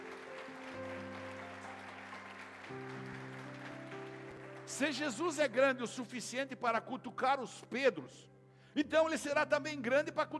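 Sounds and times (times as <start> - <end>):
audience applause: 0.0 - 5.4
speech: 4.7 - 10.3.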